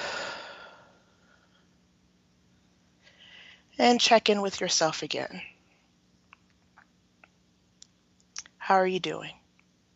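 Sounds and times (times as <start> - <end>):
soft deep breath during guided mindfulness practice: 0.0 - 1.7, 3.0 - 3.7
speech: 3.8 - 5.5, 8.7 - 9.4.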